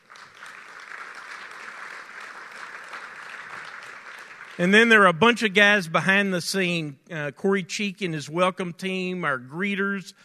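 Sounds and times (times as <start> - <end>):
audience applause: 0.0 - 5.0
speech: 4.6 - 10.2.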